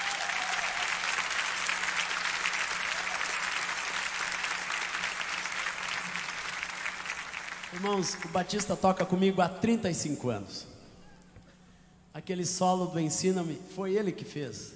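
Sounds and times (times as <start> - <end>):
audience applause: 0.0 - 8.5
speech: 7.7 - 10.7, 12.2 - 14.7.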